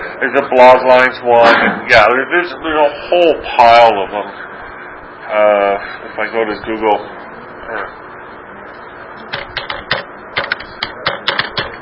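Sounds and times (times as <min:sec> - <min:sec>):
speech: 0:00.2 - 0:04.5, 0:05.3 - 0:08.0
computer keyboard typing a search term in a web browser: 0:09.3 - 0:11.7.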